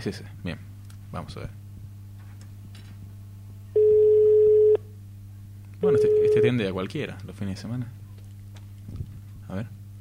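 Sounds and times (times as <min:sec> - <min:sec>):
speech: 0:00.0 - 0:01.6, 0:05.8 - 0:08.0, 0:09.5 - 0:09.8
telephone ringing: 0:03.8 - 0:04.8, 0:05.8 - 0:06.6.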